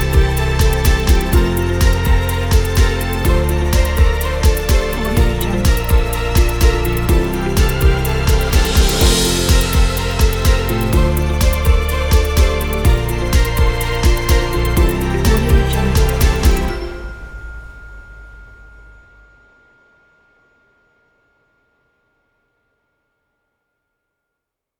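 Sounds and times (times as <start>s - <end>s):
ambient music: 0.0s - 19.4s.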